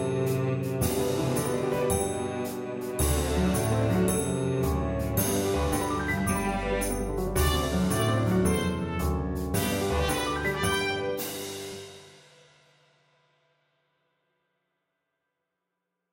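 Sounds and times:
cello melody: 0.0 - 11.2.

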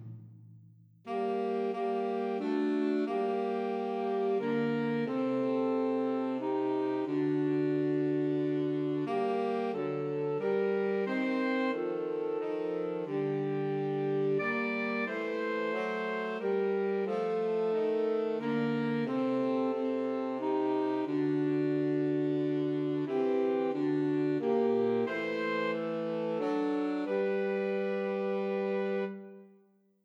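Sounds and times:
two alto saxophones: 1.1 - 29.5.

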